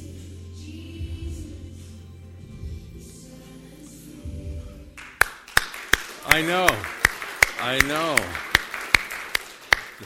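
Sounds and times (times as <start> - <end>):
clapping: 5.0 - 10.0
speech: 6.3 - 7.0, 7.6 - 8.5.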